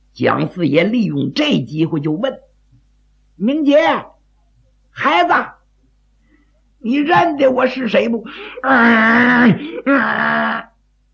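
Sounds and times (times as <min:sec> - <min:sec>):
speech: 0:00.2 - 0:02.5, 0:03.4 - 0:04.1, 0:05.0 - 0:05.6, 0:06.8 - 0:10.6
man bellowing like an ox: 0:08.6 - 0:10.7.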